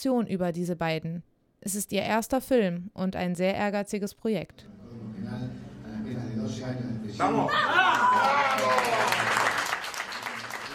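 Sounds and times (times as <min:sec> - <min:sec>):
speech: 0:00.0 - 0:04.8, 0:06.4 - 0:09.3
friends cheering: 0:07.2 - 0:10.7.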